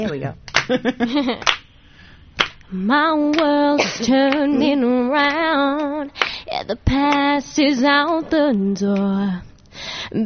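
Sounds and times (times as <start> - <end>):
speech: 0.0 - 1.6, 2.7 - 10.2
sharp hand clap: 0.5 - 1.7, 2.4 - 2.7, 3.3 - 3.6, 4.2 - 4.6, 5.2 - 6.4, 7.0 - 7.4.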